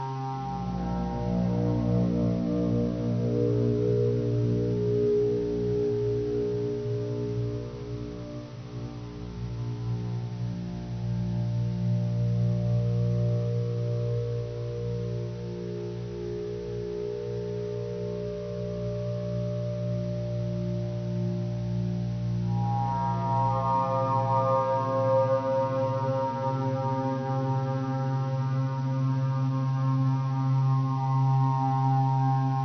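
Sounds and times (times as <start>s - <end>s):
slow background music: 0.0s - 32.6s.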